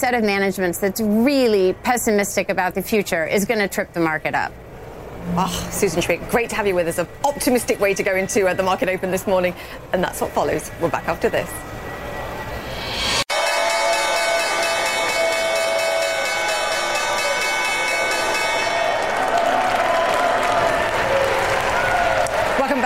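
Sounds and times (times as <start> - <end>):
speech: 0.0 - 11.7
crowd applause and cheering at stock exchange: 12.6 - 22.8.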